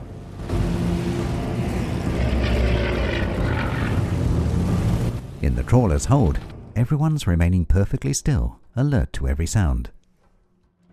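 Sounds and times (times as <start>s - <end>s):
Heinkorps bomber flying low over the water: 0.0s - 5.6s
speech: 5.7s - 10.0s.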